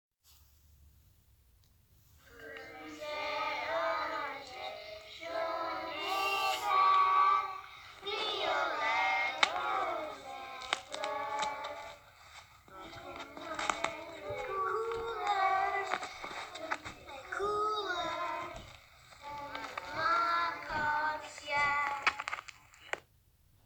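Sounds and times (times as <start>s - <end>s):
person singing in French: 2.2s - 12.1s, 12.7s - 22.3s.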